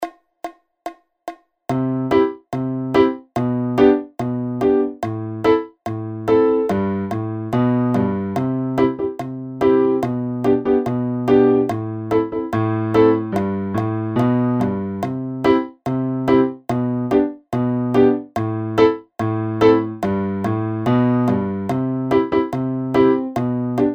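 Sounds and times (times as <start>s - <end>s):
reggae music: 1.8s - 23.9s.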